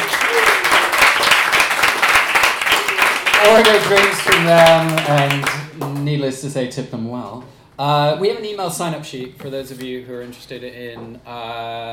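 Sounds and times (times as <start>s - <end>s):
audience applause: 0.0s - 5.6s
speech: 3.4s - 11.9s.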